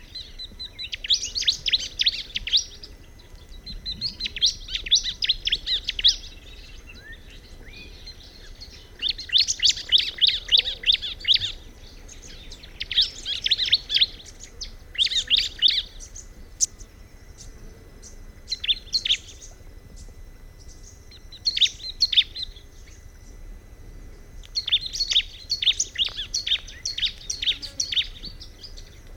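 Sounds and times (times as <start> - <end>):
background hiss: 0.0 - 29.1
bar-winged prinia singing: 0.0 - 29.1.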